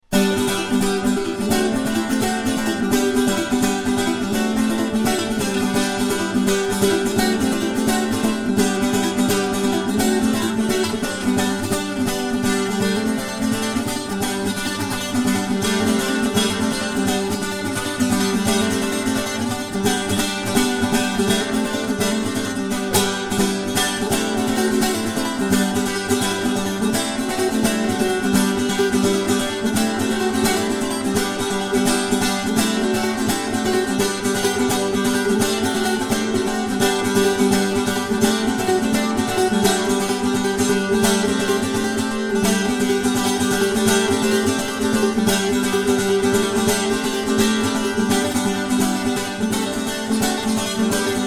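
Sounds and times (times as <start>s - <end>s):
chitarra battente playing pizzica folk dance: 0.0s - 51.2s.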